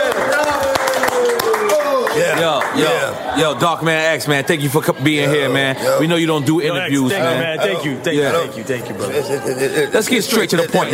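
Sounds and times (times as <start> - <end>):
audience clapping hands: 0.0 - 3.2
speech: 2.8 - 10.9
laughter: 8.9 - 10.9.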